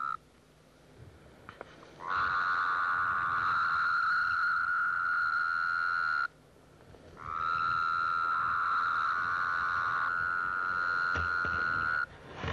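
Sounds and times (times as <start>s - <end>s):
Wyoming toad calling: 0.0s - 0.2s, 2.0s - 6.4s, 7.1s - 12.1s.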